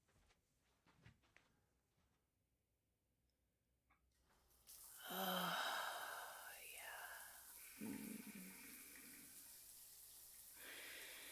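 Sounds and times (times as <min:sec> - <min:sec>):
hot shower water running: 0:04.3 - 0:11.3.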